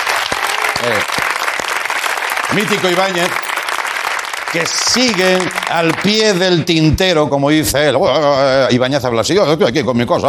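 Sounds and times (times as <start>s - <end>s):
audience applause: 0.0s - 6.7s
speech: 0.8s - 1.3s, 2.5s - 3.5s, 4.5s - 10.2s.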